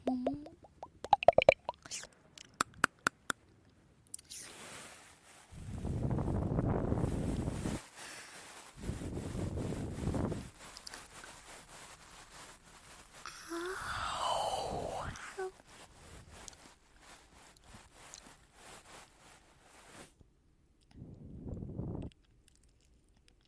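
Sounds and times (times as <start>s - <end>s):
ear eating wet clicks and plops: 0.0s - 3.4s, 22.0s - 23.4s
muffled mouth-and-breath bursts: 4.2s - 20.1s, 20.8s - 23.4s.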